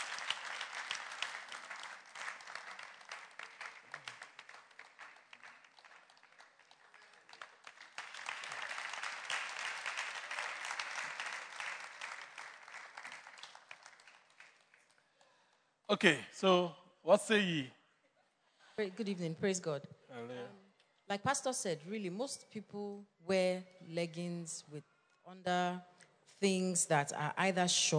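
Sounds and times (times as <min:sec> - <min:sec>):
audience clapping: 0:00.0 - 0:15.6
speech: 0:15.9 - 0:17.8, 0:18.8 - 0:20.4, 0:21.1 - 0:27.9.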